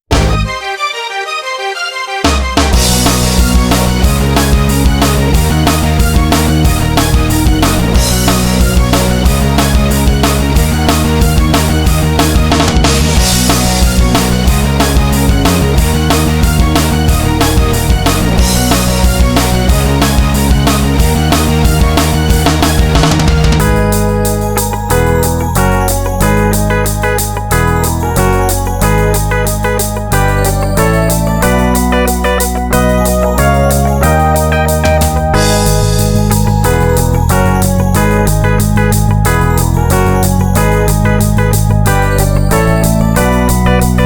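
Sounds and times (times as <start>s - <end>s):
instrumental music: 0.0s - 44.0s.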